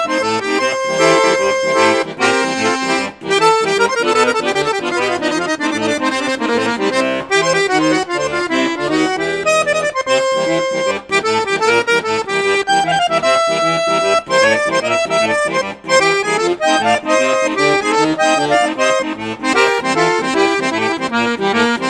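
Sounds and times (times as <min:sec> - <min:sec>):
Cavagnolo Professionnel 12 accordion on bassoon flute and piccolo registers: 0:00.0 - 0:21.8.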